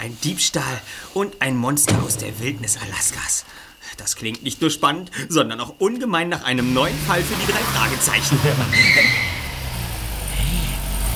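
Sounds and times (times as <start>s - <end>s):
speech: 0.0s - 9.4s
car pulling away late at night: 6.6s - 11.1s.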